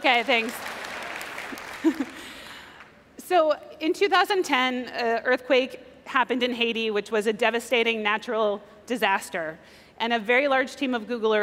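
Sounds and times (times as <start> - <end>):
speech: 0.0 - 0.8, 1.8 - 2.2, 3.3 - 11.4
audience applause: 0.0 - 2.9.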